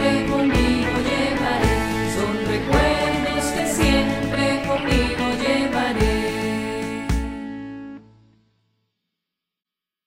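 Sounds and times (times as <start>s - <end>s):
anthem music: 0.0s - 7.4s.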